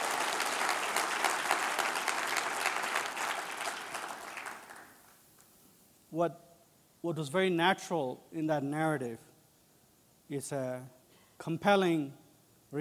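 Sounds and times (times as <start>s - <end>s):
audience applause: 0.0s - 5.1s
speech: 6.1s - 9.3s, 10.3s - 12.7s.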